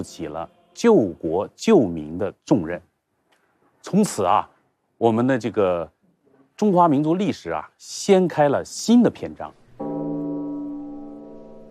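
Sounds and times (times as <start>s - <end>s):
speech: 0.0s - 2.9s, 3.8s - 6.0s, 6.6s - 9.6s
deep bell chime opening a concert: 9.8s - 11.6s.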